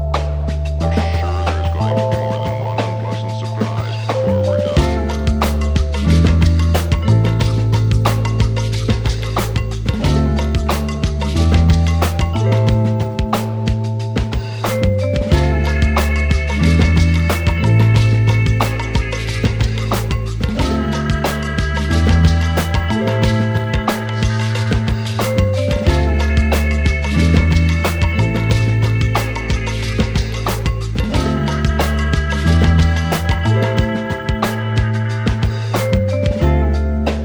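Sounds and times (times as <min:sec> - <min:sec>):
hip hop track for lyric writing: 0:00.2 - 0:37.2.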